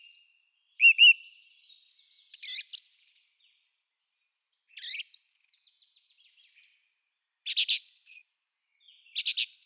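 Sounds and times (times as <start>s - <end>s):
song thrush singing: 0.0s - 9.6s.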